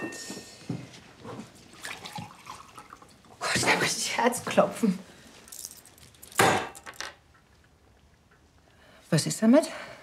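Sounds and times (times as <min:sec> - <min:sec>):
water pouring into a glass: 0:01.8 - 0:03.2
speech: 0:03.6 - 0:05.1, 0:09.1 - 0:09.9.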